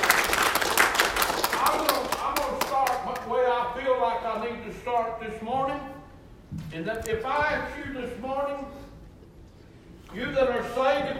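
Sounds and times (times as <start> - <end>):
audience clapping hands in praise: 0.0 - 3.3
speech: 4.6 - 6.0, 6.7 - 8.8, 10.1 - 11.1.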